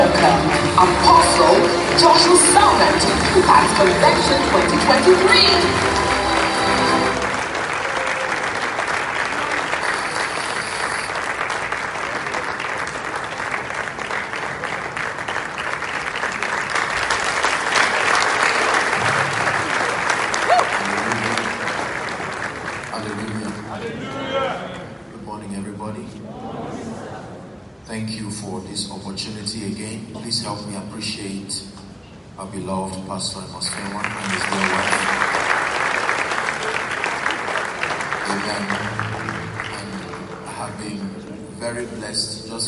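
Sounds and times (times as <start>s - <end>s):
standing crowd applauding at Impact Convention 2023 church convention: 0.0s - 24.6s, 33.6s - 41.4s.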